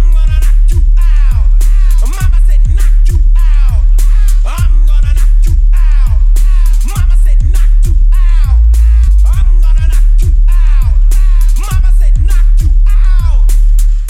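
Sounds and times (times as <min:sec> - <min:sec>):
bass-boosted trap and bass music: 0:00.0 - 0:14.0.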